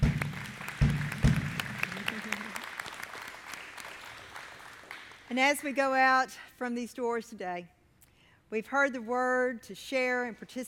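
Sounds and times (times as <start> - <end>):
audience applauding in thanks: 0.0 - 5.3
speech: 5.3 - 7.8, 8.5 - 10.6.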